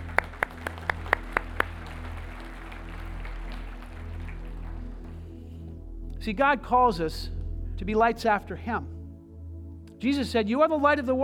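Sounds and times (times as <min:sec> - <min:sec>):
sharp hand claps: 0:00.0 - 0:05.3
speech: 0:06.2 - 0:09.0, 0:10.0 - 0:11.2.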